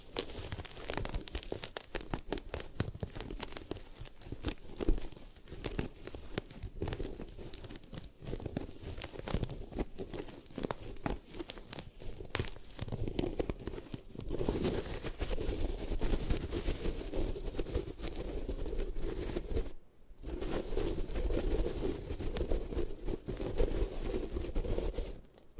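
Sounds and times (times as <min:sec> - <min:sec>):
gym chalk crushed and crumbled: 0:00.0 - 0:25.3.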